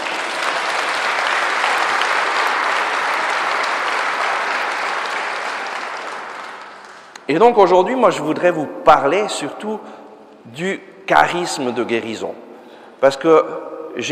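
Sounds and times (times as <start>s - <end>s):
audience applause: 0.0s - 7.2s
speech: 7.3s - 14.1s.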